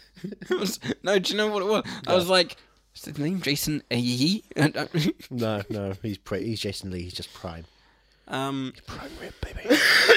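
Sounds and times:
speech: 0.2s - 10.1s
person coughing: 9.7s - 10.1s.

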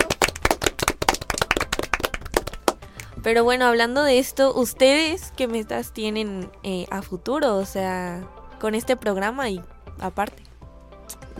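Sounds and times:
small group clapping by hand: 0.0s - 3.1s
speech: 3.2s - 10.4s.

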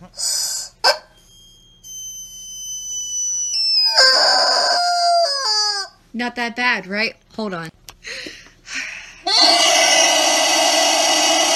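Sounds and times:
speech: 0.1s - 0.3s, 6.2s - 7.8s
27-inch rubber chicken toy screaming: 3.5s - 6.0s, 9.3s - 11.5s.

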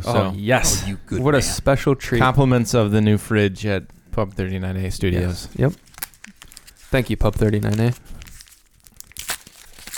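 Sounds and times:
speech: 0.0s - 5.9s, 6.9s - 8.1s
papery wrapper torn off small liqueur bottles: 5.6s - 9.9s.

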